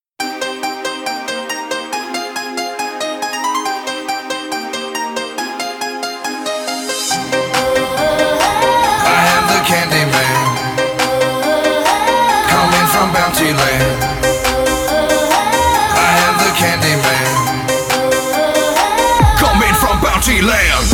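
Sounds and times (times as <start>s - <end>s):
intro music: 0.2s - 20.9s.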